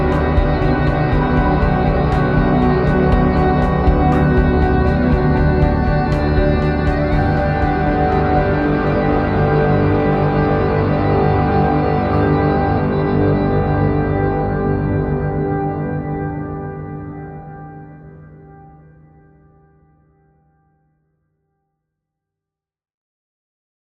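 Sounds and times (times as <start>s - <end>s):
bowed instrument: 0.0s - 16.0s.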